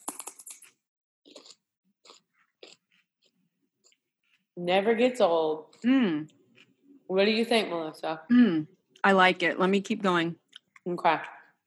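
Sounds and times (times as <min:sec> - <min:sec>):
crunching of raw celery: 0:00.0 - 0:04.5
speech: 0:04.6 - 0:06.4, 0:07.1 - 0:11.4.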